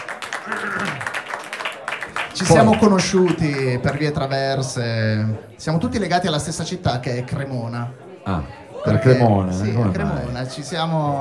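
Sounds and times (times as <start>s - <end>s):
audience applause: 0.0s - 4.4s
speech: 0.5s - 0.9s, 2.4s - 11.1s.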